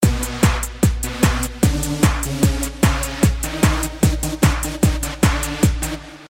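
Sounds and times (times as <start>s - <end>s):
basic dance music: 0.0s - 6.2s.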